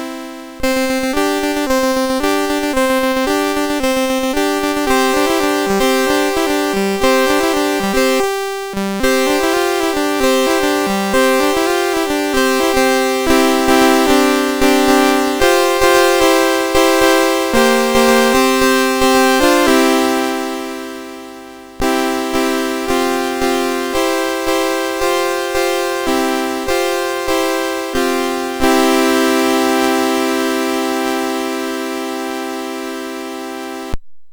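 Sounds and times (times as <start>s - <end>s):
chord progression piece on MOS6581R4 sound chip: 0.0s - 34.0s.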